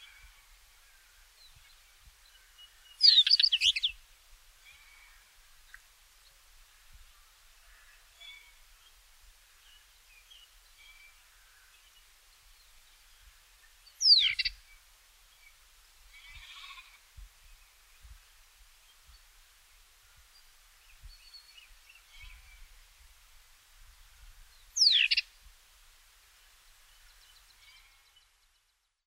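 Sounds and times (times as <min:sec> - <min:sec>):
wheatear song with scratchy whistles and chattering notes: 0:03.0 - 0:04.0, 0:14.0 - 0:14.6, 0:24.8 - 0:25.2.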